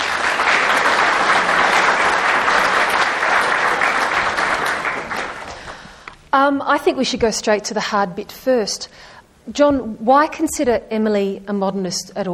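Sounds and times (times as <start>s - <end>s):
audience applause welcoming two guests at a talk: 0.0s - 6.0s
speech: 6.5s - 12.3s.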